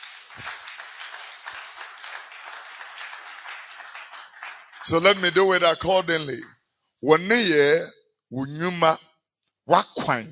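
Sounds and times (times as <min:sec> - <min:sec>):
clapping: 0:00.0 - 0:06.4
speech: 0:04.8 - 0:09.0, 0:09.7 - 0:10.3.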